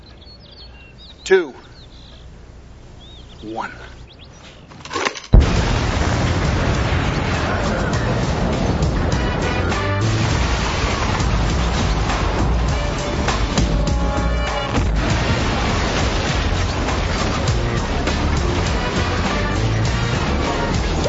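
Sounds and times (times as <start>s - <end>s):
speech: 1.3s - 1.7s, 3.4s - 4.0s
rumbling debris after explosion: 5.2s - 21.0s
detonated explosive charge blast: 5.3s - 21.0s.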